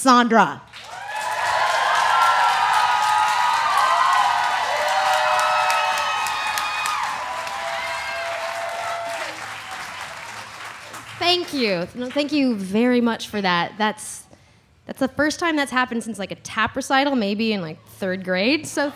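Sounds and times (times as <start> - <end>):
speech: 0.0 - 0.9, 11.2 - 14.2, 14.9 - 18.9
crowd applauding: 0.7 - 12.8
crowd whooping and shouting: 0.8 - 11.0.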